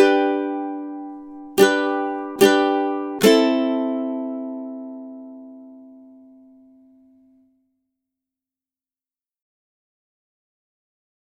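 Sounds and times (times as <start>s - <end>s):
ukulele rhythm study: 0.0s - 7.4s.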